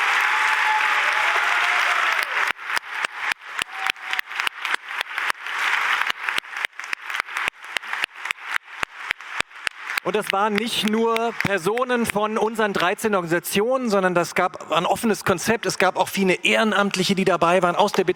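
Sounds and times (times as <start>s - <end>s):
large audience applause: 0.0s - 12.1s
speech: 10.1s - 18.1s.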